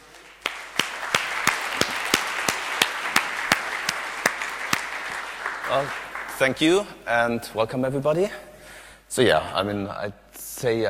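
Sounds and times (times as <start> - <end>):
audience clapping to welcome speakers: 0.0 - 6.9
speech: 5.7 - 8.5, 9.1 - 10.8.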